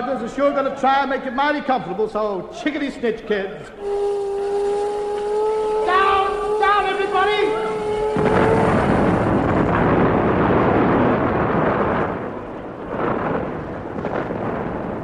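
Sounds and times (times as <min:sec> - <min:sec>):
speech: 0:00.1 - 0:04.2, 0:06.8 - 0:08.4
nuclear bomb explosion roaring: 0:03.8 - 0:15.0.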